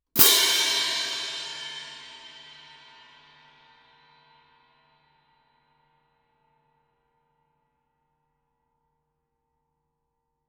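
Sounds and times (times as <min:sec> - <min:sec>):
fortissimo Viennese orchestral crash cymbals: 0:00.2 - 0:03.5.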